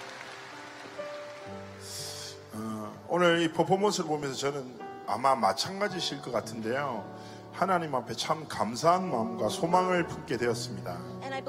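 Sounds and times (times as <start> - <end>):
audience applause: 0.0 - 2.5
speech: 3.1 - 11.4.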